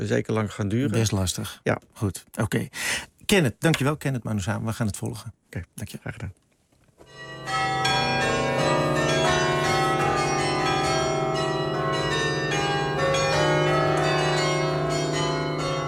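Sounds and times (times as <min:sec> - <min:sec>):
speech: 0:00.0 - 0:06.4
carillon bells of the Dom tower ringing: 0:07.1 - 0:15.8.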